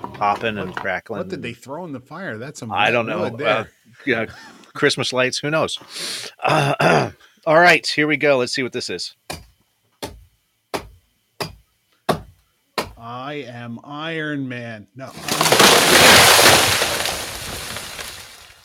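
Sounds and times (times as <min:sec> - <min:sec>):
speech: 0:00.2 - 0:09.4, 0:13.1 - 0:16.9
chopping down a tree: 0:15.1 - 0:18.6.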